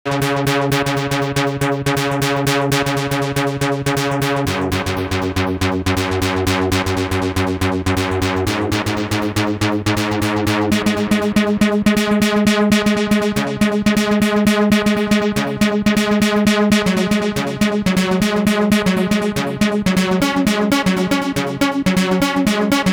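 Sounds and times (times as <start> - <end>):
JunoDS88 pluck synth arpeggios: 0.1 - 22.9.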